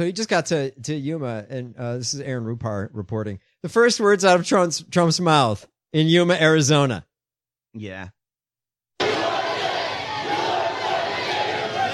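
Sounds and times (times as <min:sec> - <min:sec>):
speech: 0:00.0 - 0:07.1, 0:07.7 - 0:08.2
rally crowd chanting: 0:09.0 - 0:11.9.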